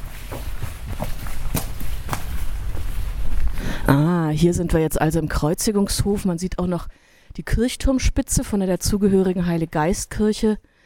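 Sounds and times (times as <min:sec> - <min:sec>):
footsteps walking into the Kreuzigungshof courtyard: 0:00.0 - 0:03.6
speech: 0:03.9 - 0:10.7.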